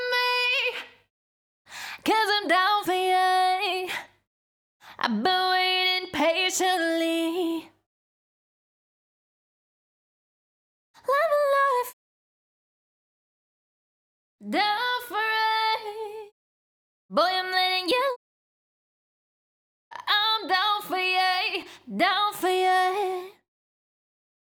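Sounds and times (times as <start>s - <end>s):
a cappella pop vocals: 0.0s - 1.1s, 1.7s - 4.2s, 4.8s - 7.8s, 11.0s - 12.0s, 14.4s - 16.3s, 17.1s - 18.2s, 19.9s - 23.4s.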